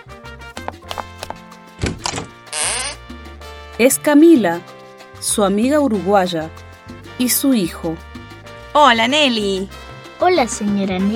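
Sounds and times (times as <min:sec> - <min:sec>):
music: 0:00.0 - 0:11.1
door opening with latch thunk and creak: 0:01.8 - 0:03.0
speech: 0:03.8 - 0:06.6, 0:07.2 - 0:08.1, 0:08.7 - 0:11.1.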